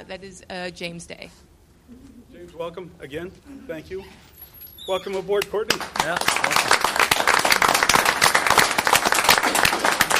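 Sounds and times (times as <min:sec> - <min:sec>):
speech: 0:00.1 - 0:06.9
applause welcoming a new fire department hire: 0:05.7 - 0:10.1.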